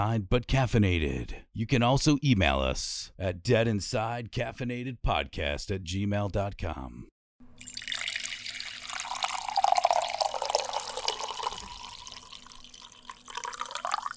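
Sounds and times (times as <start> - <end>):
speech: 0.0 - 7.7
coffee being poured: 7.6 - 14.1.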